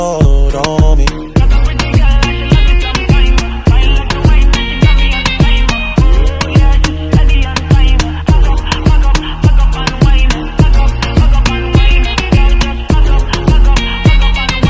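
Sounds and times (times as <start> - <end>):
ringtone: 0.2 - 14.6.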